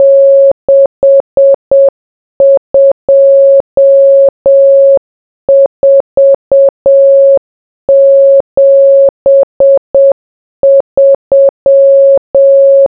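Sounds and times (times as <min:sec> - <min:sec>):
morse code beeps: 0:00.0 - 0:12.8.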